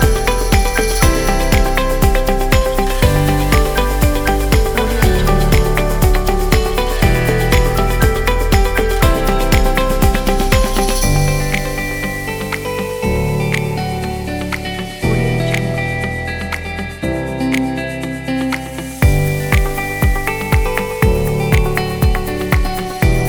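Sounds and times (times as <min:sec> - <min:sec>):
advertising background music: 0:00.0 - 0:23.2.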